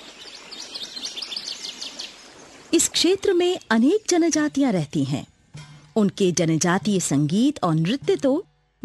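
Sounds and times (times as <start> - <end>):
birds chirping in a landscape of rivers and plains: 0.0 - 4.9
speech: 2.7 - 5.3, 6.0 - 8.8.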